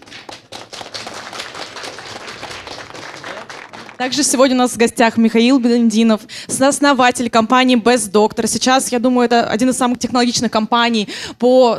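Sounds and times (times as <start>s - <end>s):
audience applause: 0.0s - 4.3s
speech: 4.0s - 11.7s.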